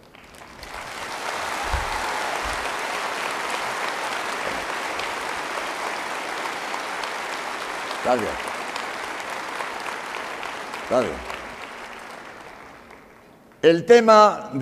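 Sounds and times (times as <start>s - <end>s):
audience applause: 0.0s - 13.4s
speech: 8.0s - 8.5s, 10.9s - 11.3s, 13.6s - 14.6s.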